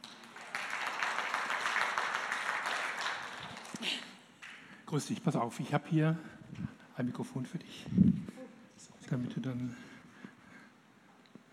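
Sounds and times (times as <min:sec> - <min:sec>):
crowd applauding: 0:00.0 - 0:04.7
speech: 0:03.8 - 0:04.1, 0:04.9 - 0:08.3, 0:09.1 - 0:09.9.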